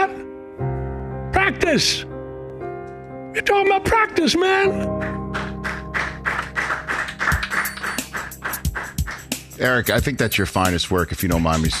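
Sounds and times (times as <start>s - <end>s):
speech: 1.5s - 2.1s, 3.4s - 5.1s, 9.6s - 11.7s
people clapping in studio: 4.9s - 9.7s.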